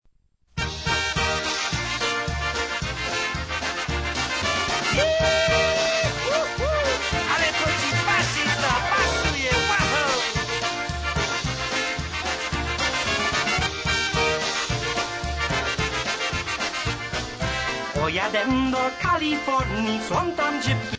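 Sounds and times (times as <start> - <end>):
polka music: 0.6 - 20.9.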